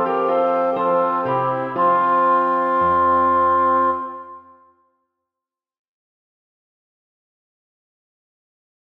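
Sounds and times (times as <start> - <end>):
two clarinets playing a dance: 0.0 - 4.7
bassoon playing a dance: 0.0 - 4.8
piano playing a dance: 0.0 - 4.8.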